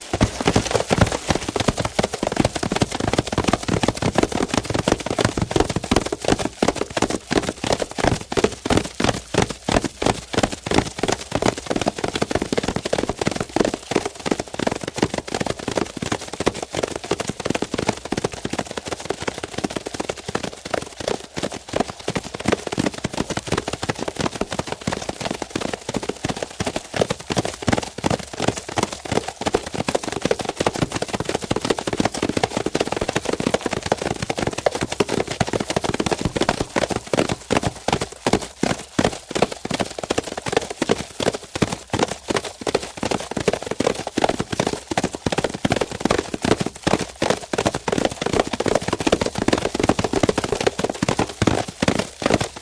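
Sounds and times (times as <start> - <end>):
group of horses galloping to a stop: 0.0 - 52.6.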